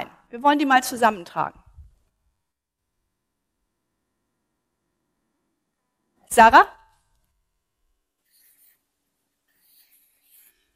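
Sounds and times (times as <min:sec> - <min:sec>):
speech: 0:00.3 - 0:01.6, 0:06.3 - 0:06.8
marker squeaking as it writes on a board: 0:08.2 - 0:10.7.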